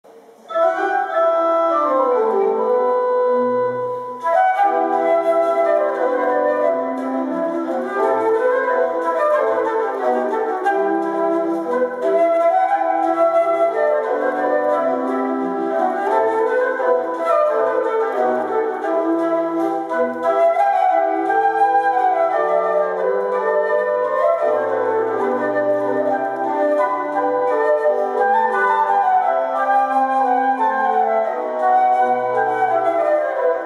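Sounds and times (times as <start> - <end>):
hornpipe tune: 0.4 - 33.6.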